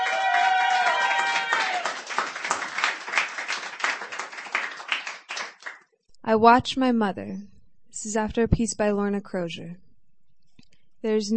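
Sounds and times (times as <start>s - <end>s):
audience applause at an open mic poetry reading: 0.0s - 5.8s
speech: 6.3s - 9.8s, 11.0s - 11.3s.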